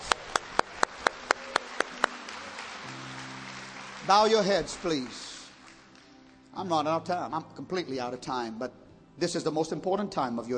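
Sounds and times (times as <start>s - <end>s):
audience hands clapping in a steady brisk rhythm: 0.0s - 7.0s
speech: 4.1s - 5.3s, 6.6s - 10.5s.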